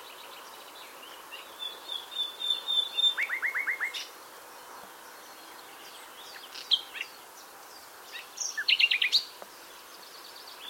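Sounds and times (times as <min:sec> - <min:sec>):
common nightingale Luscinia megarhynchos singing: 0:00.0 - 0:10.6.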